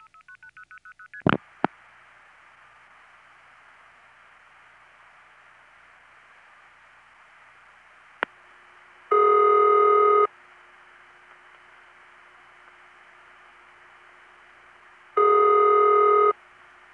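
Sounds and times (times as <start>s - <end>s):
independent telephone company ringback tone: 9.1s - 10.3s, 15.2s - 16.4s.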